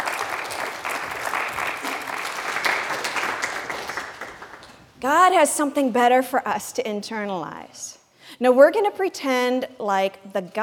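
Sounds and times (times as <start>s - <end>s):
audience applause: 0.0s - 4.8s
speech: 5.0s - 10.6s.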